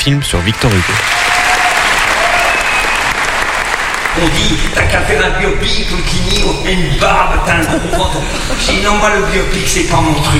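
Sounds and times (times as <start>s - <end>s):
speech: 0.0s - 1.3s, 4.2s - 10.3s
large audience applause welcoming a guest: 0.5s - 5.3s
laughter: 7.0s - 9.7s.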